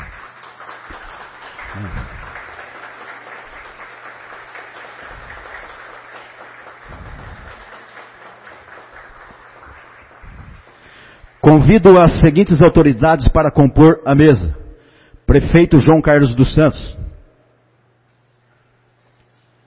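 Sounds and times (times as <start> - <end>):
audience applause: 0.0 - 11.6
speech: 1.8 - 2.2, 11.5 - 14.6, 15.3 - 17.0.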